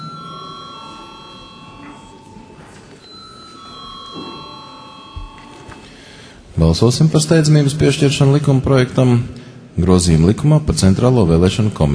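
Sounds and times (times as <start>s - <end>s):
electronic bell in a parliament chamber calling members before a vote: 0.0s - 6.2s
murmur of voices: 0.0s - 10.1s
speech: 6.6s - 11.9s.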